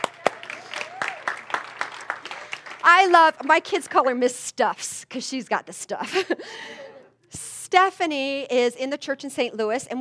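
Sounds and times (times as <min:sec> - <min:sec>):
audience applause: 0:00.0 - 0:03.5
speech: 0:02.8 - 0:06.8, 0:07.7 - 0:09.9.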